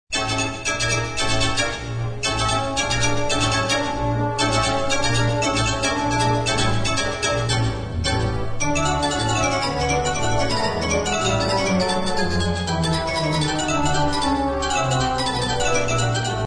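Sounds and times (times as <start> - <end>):
theatre organ: 0.4 - 16.4.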